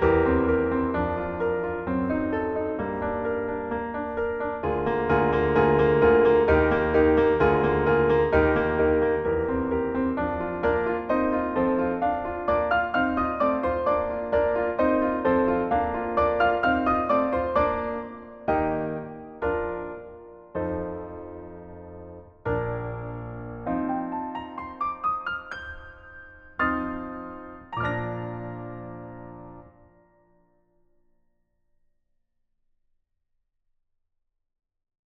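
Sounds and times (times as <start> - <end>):
playback piano playing: 0.0 - 30.6.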